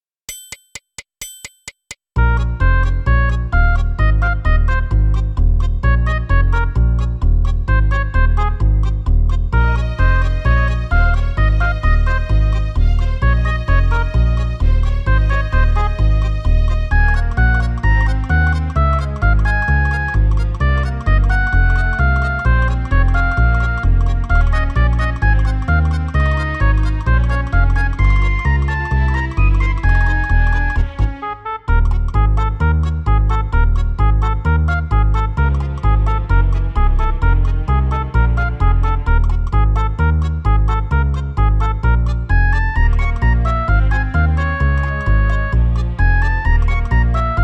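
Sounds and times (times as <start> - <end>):
Yamaha PSR-E373 electronic keyboard: 2.2 - 47.4.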